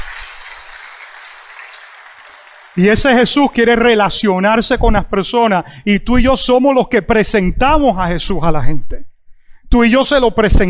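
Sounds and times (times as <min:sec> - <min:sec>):
crowd applauding: 0:00.0 - 0:03.4
speech: 0:02.8 - 0:09.1, 0:09.7 - 0:10.6.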